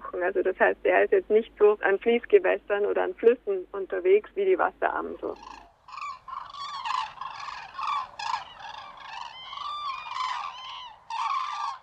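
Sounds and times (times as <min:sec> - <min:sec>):
speech: 0:00.2 - 0:05.6
common crane calls: 0:05.3 - 0:11.8.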